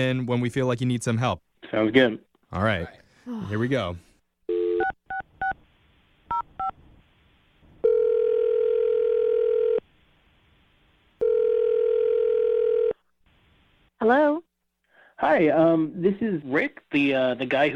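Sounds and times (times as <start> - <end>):
speech: 0.0 - 4.1, 14.0 - 14.5, 15.2 - 17.7
telephone dial tone: 7.8 - 9.8, 11.2 - 13.0.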